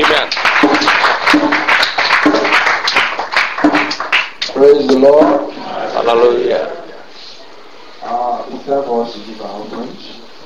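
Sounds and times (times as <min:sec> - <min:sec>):
audience clapping: 0:00.0 - 0:05.0
speech: 0:04.6 - 0:06.8, 0:08.4 - 0:10.2.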